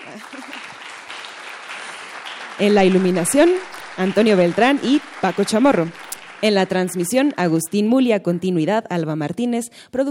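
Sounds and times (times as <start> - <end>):
concert audience applause: 0.0 - 7.9
speech: 0.2 - 0.7, 2.6 - 10.0.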